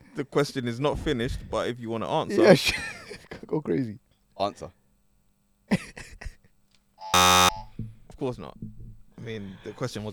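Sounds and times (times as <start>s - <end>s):
speech: 0.2s - 4.8s, 5.7s - 6.0s, 8.2s - 10.1s
quiz buzzer buzzing in: 7.1s - 7.7s.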